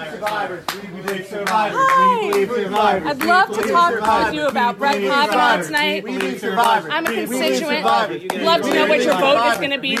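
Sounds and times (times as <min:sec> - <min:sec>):
speech: 0:00.0 - 0:09.9
sharp loud claps or slaps: 0:00.2 - 0:09.9
crowd of protesters cheering and shouting: 0:01.7 - 0:02.4.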